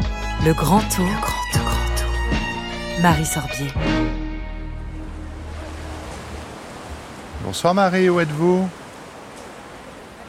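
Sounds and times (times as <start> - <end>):
speech: 0.4 - 1.7, 3.0 - 4.2, 7.4 - 8.8
Mediterranean Sea waves washing ashore at Menton: 4.8 - 10.2.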